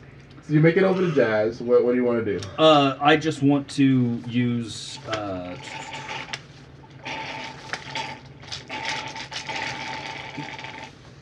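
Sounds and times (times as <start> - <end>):
speech: 0.5 - 6.1
person sucking a drink through a straw: 5.5 - 11.0.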